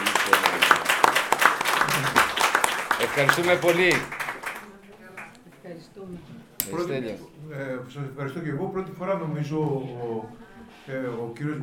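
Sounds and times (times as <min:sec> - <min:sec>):
audience applause: 0:00.0 - 0:05.4
speech: 0:03.2 - 0:04.2, 0:06.1 - 0:11.6.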